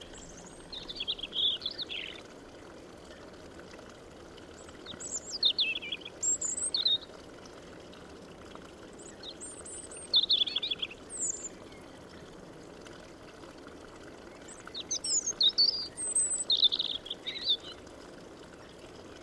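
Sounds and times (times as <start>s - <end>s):
European robin singing: 0.0s - 2.2s, 4.8s - 7.1s, 9.0s - 12.0s, 14.4s - 17.8s.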